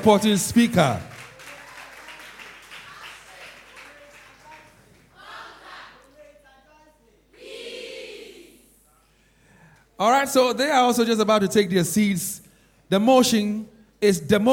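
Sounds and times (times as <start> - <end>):
speech: 0.0 - 1.1, 10.0 - 14.5
audience applause at a senior high school debate: 0.6 - 5.8.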